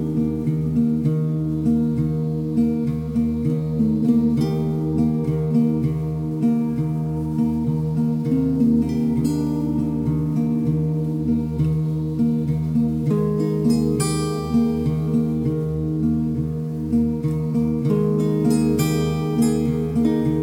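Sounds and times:
acoustic guitar chill groove: 0.0 - 20.4.

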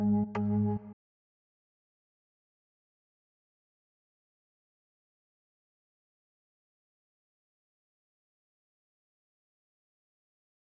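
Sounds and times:
organ playing in A: 0.0 - 0.9.

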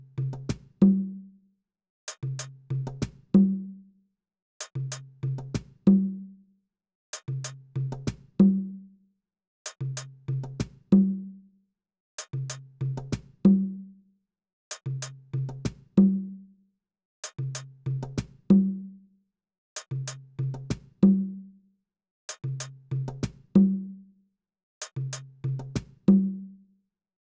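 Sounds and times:
percussion: 0.0 - 1.3, 2.1 - 3.8, 4.6 - 6.3, 7.1 - 8.9, 9.7 - 11.4, 12.2 - 13.9, 14.7 - 16.4, 17.2 - 19.0, 19.8 - 21.5, 22.3 - 24.0, 24.8 - 26.6.

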